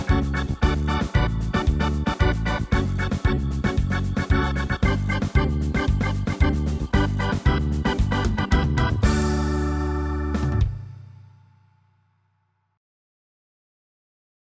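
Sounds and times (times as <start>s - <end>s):
samba on organ: 0.0s - 11.2s.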